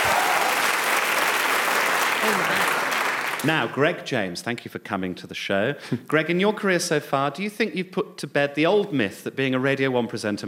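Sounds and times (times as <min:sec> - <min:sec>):
audience applause: 0:00.0 - 0:03.7
speech: 0:03.4 - 0:10.4.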